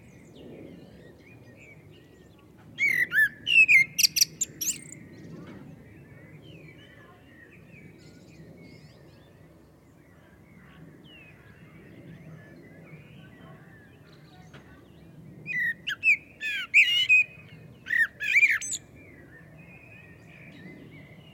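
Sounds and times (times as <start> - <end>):
common blackbird Turdus merula song: 0.0 - 21.3.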